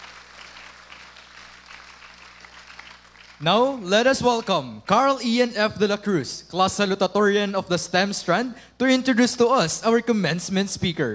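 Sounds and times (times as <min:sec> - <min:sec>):
crowd applauding: 0:00.0 - 0:03.8
speech: 0:03.4 - 0:11.1.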